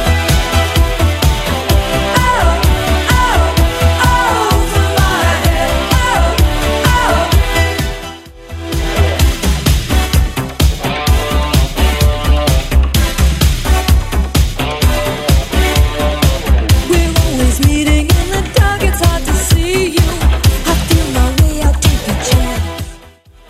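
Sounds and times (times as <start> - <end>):
80s style drum beat at 128 bpm: 0.0 - 8.1, 8.7 - 22.9.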